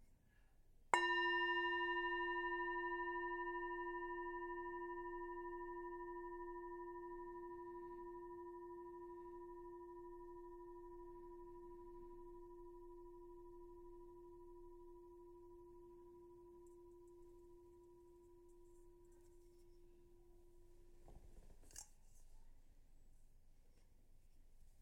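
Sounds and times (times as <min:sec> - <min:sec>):
meditation bell ringing: 0:01.0 - 0:19.1.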